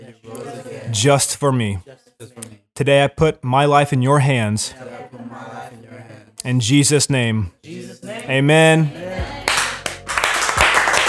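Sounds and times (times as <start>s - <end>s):
speech: 0.9s - 5.6s, 6.4s - 9.0s
crowd applause: 9.5s - 11.0s.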